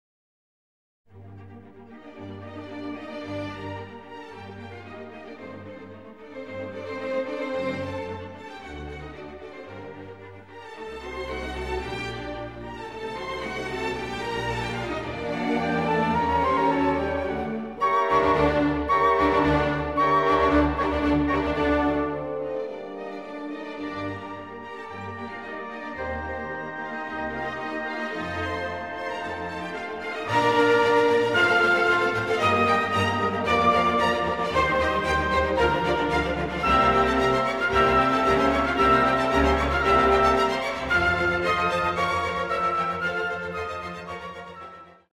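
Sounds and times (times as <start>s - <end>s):
symphony movement: 1.1s - 45.1s.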